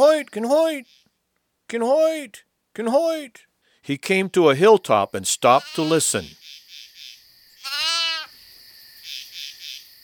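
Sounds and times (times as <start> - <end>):
high chirping night chorus: 0.0 - 10.0
speech: 0.1 - 1.0, 1.7 - 6.6
lost lamb bleating: 5.5 - 6.3, 7.6 - 8.3.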